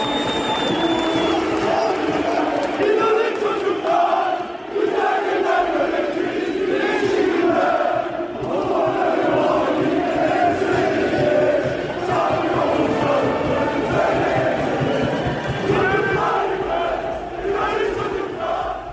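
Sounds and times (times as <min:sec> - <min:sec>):
large stadium crowd chanting slogans: 0:00.0 - 0:18.9.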